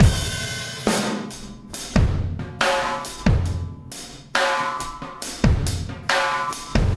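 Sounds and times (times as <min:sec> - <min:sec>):
processed drum kit beat: 0:00.0 - 0:06.9.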